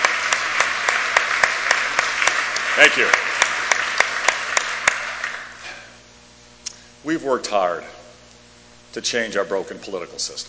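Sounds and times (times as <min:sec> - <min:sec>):
audience applause: 0:00.0 - 0:05.6
speech: 0:02.8 - 0:03.2, 0:07.0 - 0:08.0, 0:09.0 - 0:10.4.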